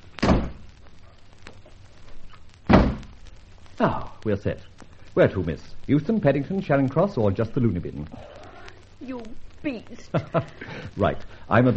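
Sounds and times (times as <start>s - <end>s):
rustling: 0.0s - 11.6s
heavy car doors thudding shut: 2.7s - 3.1s
speech: 3.8s - 8.4s, 9.0s - 11.7s
laughter: 10.0s - 11.1s.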